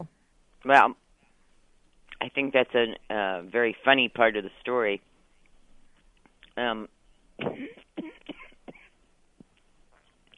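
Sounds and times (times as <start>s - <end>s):
speech: 0.0s - 1.0s, 2.2s - 5.1s, 6.6s - 8.1s
person coughing: 7.4s - 8.9s
throat clearing: 7.4s - 8.9s.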